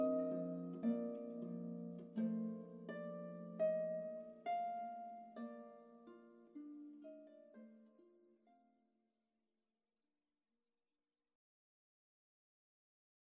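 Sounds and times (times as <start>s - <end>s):
harp: 0.0s - 8.6s.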